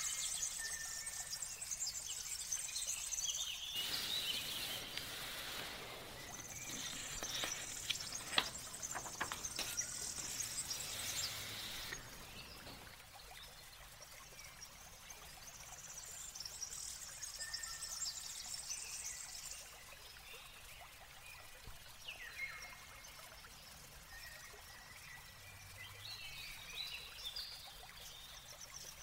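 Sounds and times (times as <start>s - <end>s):
birds chirping and twittering: 0.0s - 13.4s
water flowing in a morning garden: 0.0s - 29.0s.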